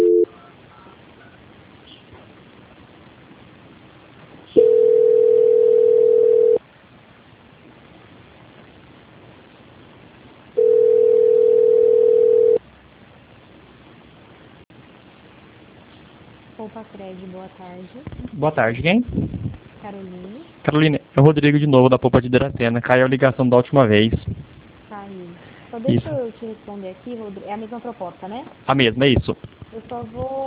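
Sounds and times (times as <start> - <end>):
telephone ringback tone while a call is transferred: 0.0 - 0.3, 4.6 - 6.6, 10.6 - 12.6
low telephone line hiss: 0.0 - 30.4
speech: 16.8 - 24.4, 25.8 - 30.4.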